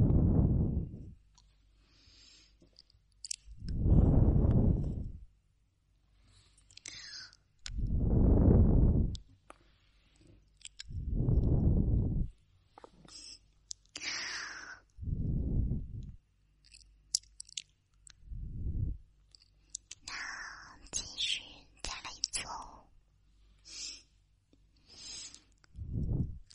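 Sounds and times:
deep muffled whooshing of ear-cleaning: 0.0s - 1.2s, 3.6s - 5.3s, 7.7s - 9.2s, 10.9s - 12.4s, 15.0s - 16.2s, 18.3s - 19.0s, 25.8s - 26.5s.

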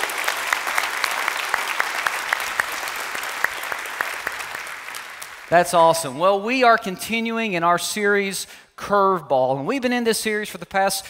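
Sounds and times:
church congregation applauding to welcome online viewers: 0.0s - 6.2s
speech: 5.5s - 11.0s.

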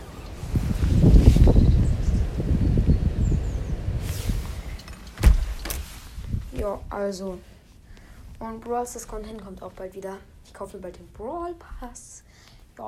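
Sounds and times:
storm wind through opened window: 0.0s - 7.5s
speech: 6.7s - 7.5s, 8.4s - 12.8s.

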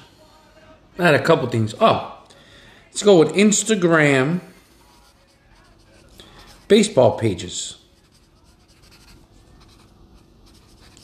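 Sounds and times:
speech: 1.0s - 2.2s, 3.0s - 4.5s, 6.7s - 7.8s
pen writing on paper: 4.8s - 6.9s, 7.9s - 11.0s.

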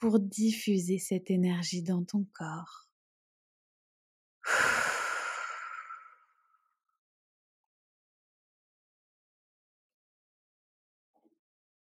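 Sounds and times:
speech: 0.0s - 2.9s
strong breath pushed out through the mouth during a guided meditation: 4.5s - 6.2s.

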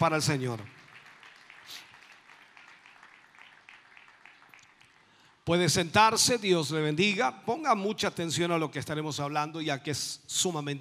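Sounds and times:
speech: 0.0s - 0.8s, 5.5s - 10.8s
crowd applause: 0.6s - 5.3s.

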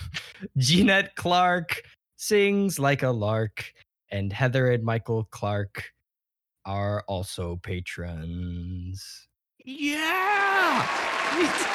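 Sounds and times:
speech: 0.4s - 6.0s, 6.6s - 11.7s
person giving a long drawn-out shouted cheer and whoop: 9.7s - 11.7s
audience clapping: 10.5s - 11.7s.

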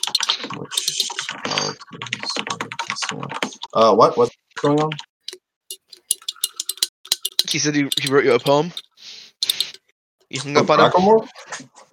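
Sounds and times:
typing notes on a computer keyboard: 0.0s - 3.7s, 4.6s - 8.2s
speech: 3.8s - 5.1s, 7.5s - 8.8s, 10.3s - 11.7s.

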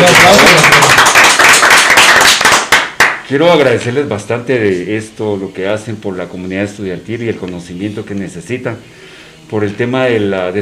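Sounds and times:
audience applause: 0.0s - 3.2s
speech: 3.3s - 10.6s.

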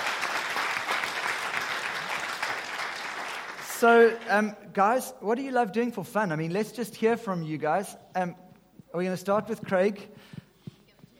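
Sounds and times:
round of applause: 0.0s - 4.4s
speech: 3.8s - 10.4s.

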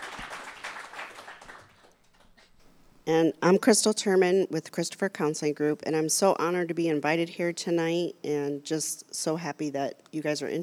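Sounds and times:
crowd applause: 0.0s - 2.4s
speech: 3.1s - 10.6s.

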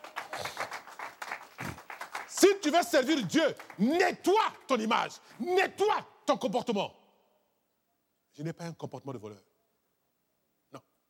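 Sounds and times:
church congregation applauding during a sermon: 0.0s - 5.1s
speech: 2.4s - 7.0s, 8.4s - 9.5s.

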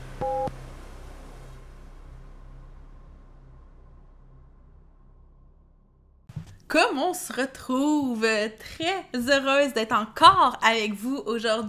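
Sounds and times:
beep: 0.2s - 0.5s
speech: 6.7s - 11.6s.

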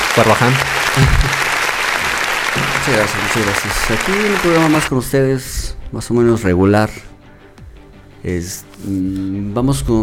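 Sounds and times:
crowd applause: 0.0s - 4.9s
speech: 0.2s - 1.5s, 2.6s - 7.1s, 8.2s - 10.0s.

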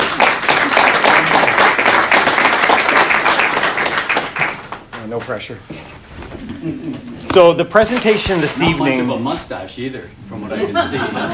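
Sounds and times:
audience applause: 0.0s - 5.0s
speech: 5.1s - 5.8s, 6.6s - 11.3s
laughter: 6.4s - 7.3s, 10.4s - 11.3s.

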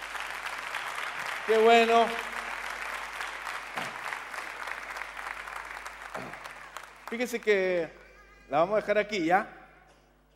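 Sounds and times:
audience clapping: 0.0s - 7.8s
speech: 1.5s - 2.3s, 7.1s - 9.6s.

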